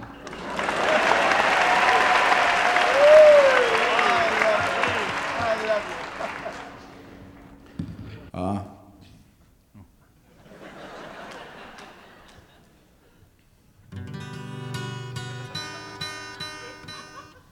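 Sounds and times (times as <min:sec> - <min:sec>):
audience applause welcoming a performer at a talent-spotting show: 0:00.1 - 0:07.5
laughter: 0:00.2 - 0:07.2, 0:10.3 - 0:13.0, 0:15.5 - 0:17.5.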